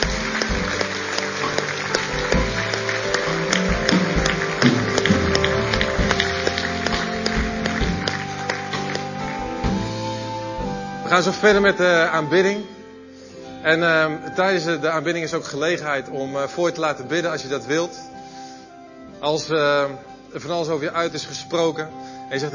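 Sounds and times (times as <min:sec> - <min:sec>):
audience applause: 0:00.0 - 0:11.7
speech: 0:11.2 - 0:12.8, 0:13.6 - 0:18.1, 0:19.2 - 0:22.5.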